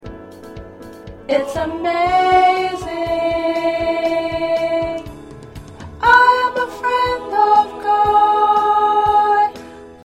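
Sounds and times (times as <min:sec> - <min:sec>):
soprano singing: 0:01.3 - 0:05.2, 0:06.0 - 0:09.6.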